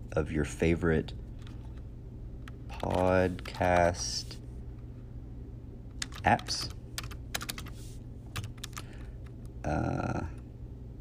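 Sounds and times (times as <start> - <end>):
speech: 0.2 - 1.2, 2.8 - 4.4, 6.2 - 6.8, 9.6 - 10.4
typing on a computer keyboard while building a website: 1.4 - 4.2, 5.9 - 9.5.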